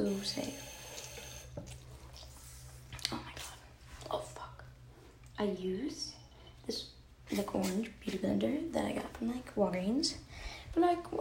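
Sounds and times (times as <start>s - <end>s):
speech: 0.0s - 0.7s, 5.4s - 6.1s, 6.7s - 11.1s
tap water running as a makeup sponge is wetted: 0.0s - 1.8s.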